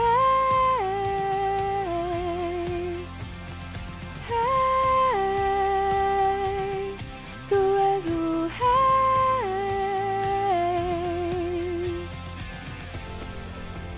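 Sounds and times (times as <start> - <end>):
soprano singing: 0.0 - 3.1, 4.2 - 12.1.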